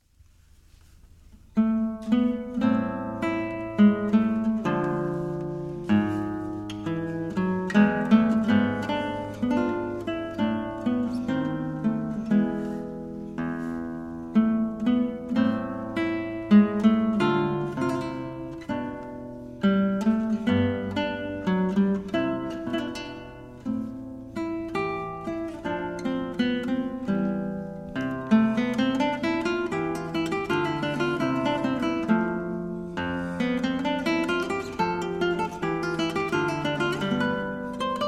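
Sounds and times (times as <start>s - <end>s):
live sarabande music: 1.6s - 38.0s.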